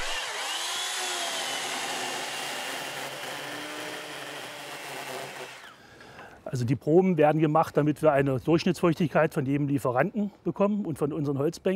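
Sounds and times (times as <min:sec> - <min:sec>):
motorized saw cutting into a beech log for wood chips: 0:00.0 - 0:05.8
speech: 0:06.5 - 0:11.7.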